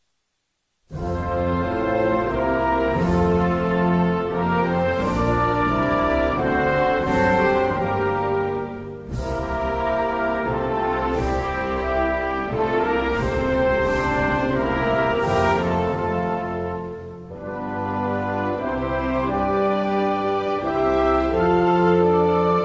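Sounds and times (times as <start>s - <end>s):
national anthem: 0.9s - 22.6s.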